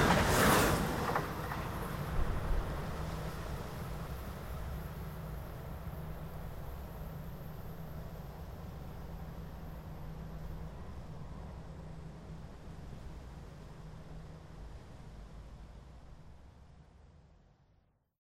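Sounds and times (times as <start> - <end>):
Amtrak train: 0.0 - 18.0.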